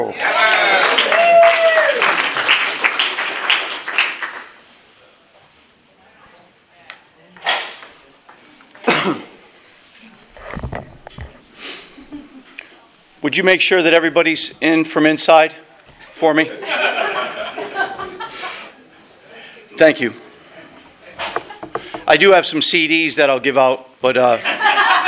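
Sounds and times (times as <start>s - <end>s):
speech: 0.0s - 0.5s, 13.3s - 15.6s, 16.2s - 16.8s, 19.8s - 20.2s, 22.2s - 24.8s
audience applause welcoming a guest speaker: 0.2s - 4.5s
scattered knocks and rustles: 10.3s - 11.5s, 20.8s - 22.4s
laughter: 11.9s - 12.6s, 16.5s - 18.8s, 24.4s - 25.0s.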